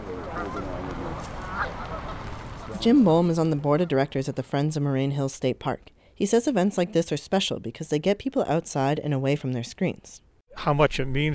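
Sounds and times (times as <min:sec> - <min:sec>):
geese honking: 0:00.0 - 0:05.0
speech: 0:00.4 - 0:01.8, 0:02.7 - 0:11.3.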